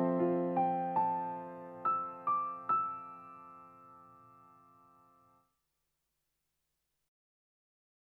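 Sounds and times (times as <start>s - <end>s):
Yamaha CK88 S700 piano: 0.0s - 5.4s.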